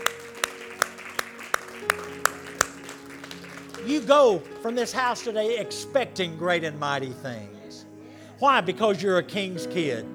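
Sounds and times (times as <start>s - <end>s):
audience clapping: 0.0s - 5.8s
speech: 3.9s - 7.6s, 8.4s - 10.1s.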